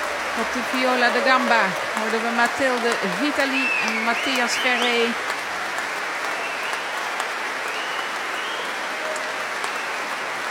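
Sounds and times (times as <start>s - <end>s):
concert audience applause after an early-music performance: 0.0s - 10.4s
speech: 0.4s - 5.3s.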